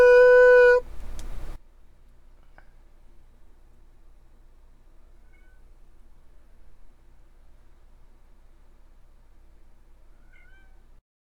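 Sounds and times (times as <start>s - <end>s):
cat meowing: 0.0s - 1.6s.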